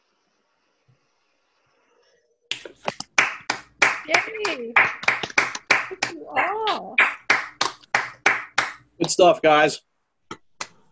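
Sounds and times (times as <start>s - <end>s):
audience applauding the poets: 3.1s - 6.1s, 6.7s - 8.8s
speech: 4.1s - 5.0s, 9.0s - 9.9s.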